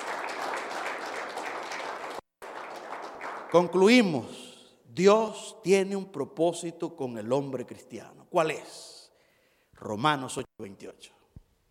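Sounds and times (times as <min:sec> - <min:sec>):
audience applause: 0:00.0 - 0:04.0
speech: 0:03.5 - 0:04.4, 0:05.0 - 0:08.9, 0:09.8 - 0:11.2.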